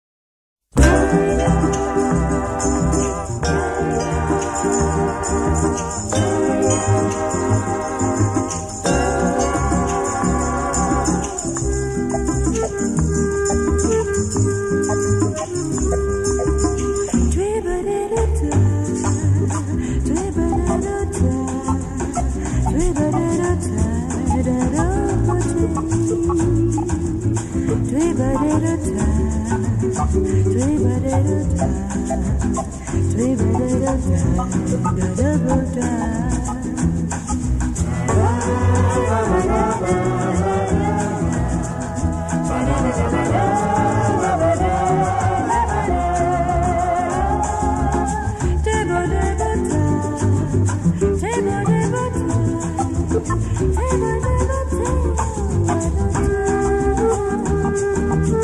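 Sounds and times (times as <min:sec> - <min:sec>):
bossa nova music: 0:00.7 - 0:58.4.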